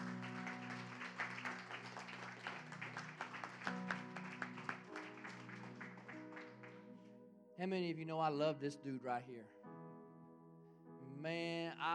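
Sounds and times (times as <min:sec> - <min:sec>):
audience applauding with hand claps: 0:00.0 - 0:07.0
speech: 0:07.6 - 0:09.6, 0:11.2 - 0:11.9.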